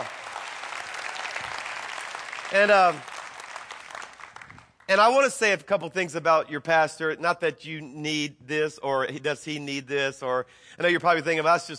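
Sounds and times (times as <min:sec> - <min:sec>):
audience clapping: 0:00.0 - 0:05.0
speech: 0:02.5 - 0:03.1, 0:04.9 - 0:11.7.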